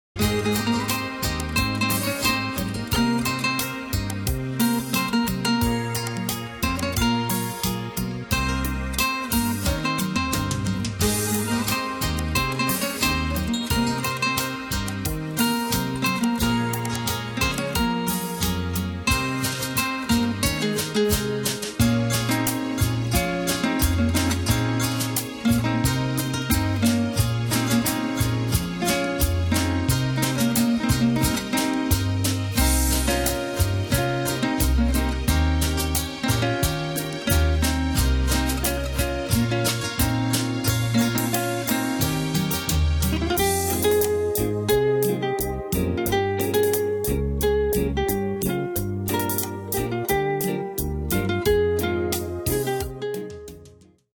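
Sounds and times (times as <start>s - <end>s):
instrumental music: 0.0s - 54.1s.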